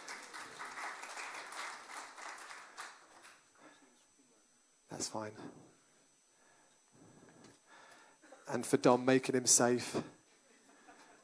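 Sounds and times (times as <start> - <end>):
round of applause: 0.0 - 3.4
speech: 4.9 - 5.7, 8.5 - 10.2.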